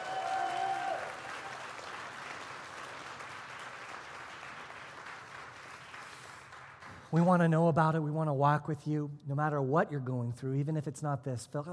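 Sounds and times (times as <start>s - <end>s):
audience clapping hands: 0.0s - 7.2s
speech: 7.1s - 11.7s.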